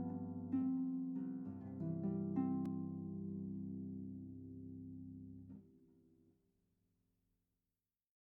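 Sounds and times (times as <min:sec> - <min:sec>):
harp playing: 0:00.0 - 0:05.1.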